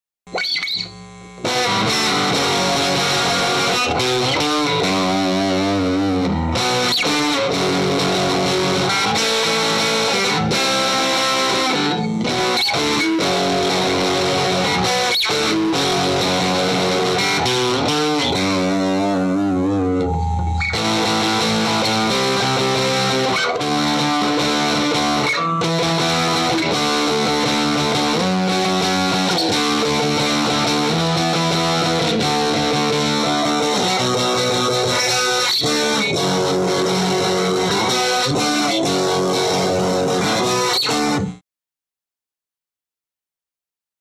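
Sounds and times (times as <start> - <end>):
guitar: 0.3 - 41.4.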